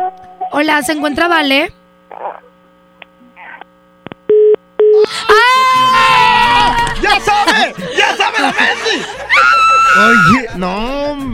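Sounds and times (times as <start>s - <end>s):
speech: 0.5s - 2.5s, 7.2s - 11.3s
telephone ringing tone during outgoing call: 4.3s - 5.0s
laughter: 5.1s - 10.8s.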